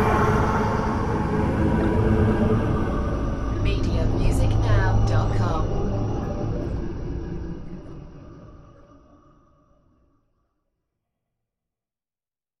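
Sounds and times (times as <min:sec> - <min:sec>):
dark force flybys: 0:00.0 - 0:08.7.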